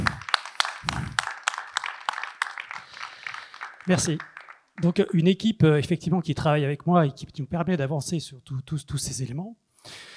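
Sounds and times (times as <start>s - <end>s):
audience applause: 0.0s - 5.1s
speech: 3.9s - 10.1s.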